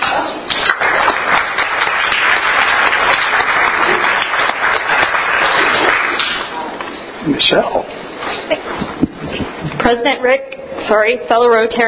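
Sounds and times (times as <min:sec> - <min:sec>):
applause at a Rotary club meeting welcoming a new member: 0:00.5 - 0:06.5
speech: 0:07.3 - 0:07.9, 0:08.5 - 0:08.8, 0:09.8 - 0:11.8.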